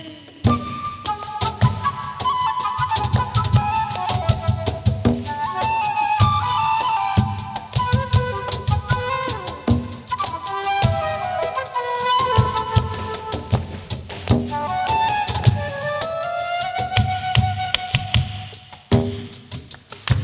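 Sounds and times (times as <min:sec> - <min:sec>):
guajira music intro: 0:00.5 - 0:20.2.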